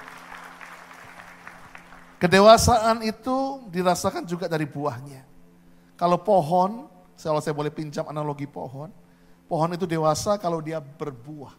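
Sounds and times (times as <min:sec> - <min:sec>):
audience applause: 0:00.0 - 0:02.2
speech: 0:02.2 - 0:05.3, 0:06.0 - 0:11.5.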